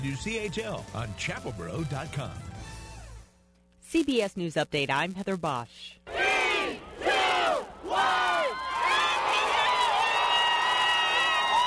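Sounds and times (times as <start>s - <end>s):
speech: 0.0s - 2.7s, 3.9s - 6.2s
New Year 2015 crowd shouting together in Times Square, New York: 6.1s - 10.6s
New Year 2015 crowd cheering and whooping in Times Square, New York: 6.2s - 11.6s.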